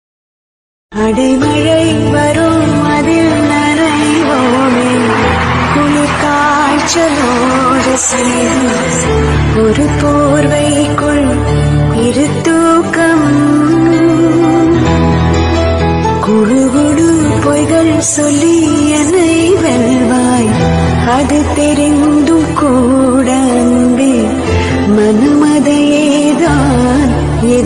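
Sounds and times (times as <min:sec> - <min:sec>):
Tamil cover song: 0:01.0 - 0:27.6.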